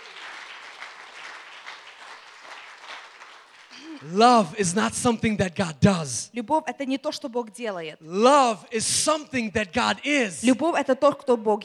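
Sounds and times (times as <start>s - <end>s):
audience clapping: 0.0s - 4.6s
speech: 3.8s - 11.6s.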